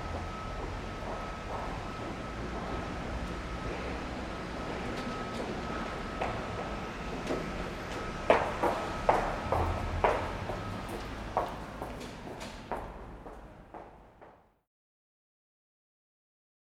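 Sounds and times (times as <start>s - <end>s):
hurried footsteps: 0.1s - 3.6s, 4.5s - 14.4s.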